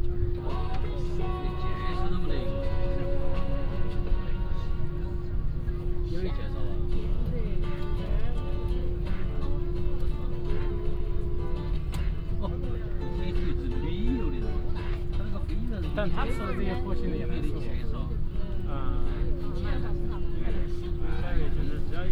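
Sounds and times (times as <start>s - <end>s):
airplane taking off from Chengdu to Beijing: 0.0s - 22.1s.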